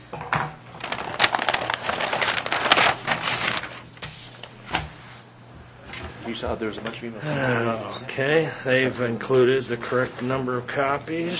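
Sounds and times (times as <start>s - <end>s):
tear-proof envelope being opened, ripping and rustling: 0.7s - 4.0s
speech: 6.3s - 11.3s.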